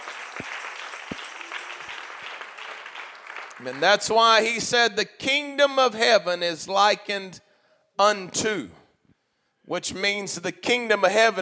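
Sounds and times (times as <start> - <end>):
crowd audience clapping hands: 0.0 - 4.5
speech: 3.6 - 8.8, 9.7 - 11.3.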